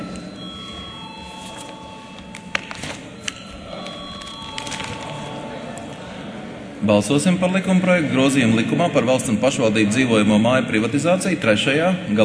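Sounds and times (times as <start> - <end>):
electric voting bell ringing: 0.0 - 6.1
murmur of people in the hall: 0.0 - 12.2
speech: 6.8 - 12.2.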